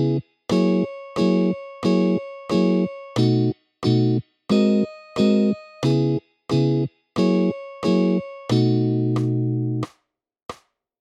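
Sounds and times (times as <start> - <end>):
jazz-blues 12 bar progression in B: 0.0 - 4.8, 5.8 - 9.8.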